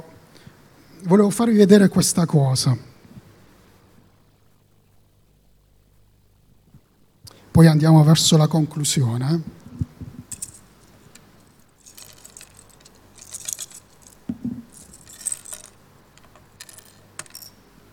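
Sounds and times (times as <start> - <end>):
speech: 1.0 - 2.9, 7.6 - 9.8
toy balance scale being handled: 10.2 - 17.9.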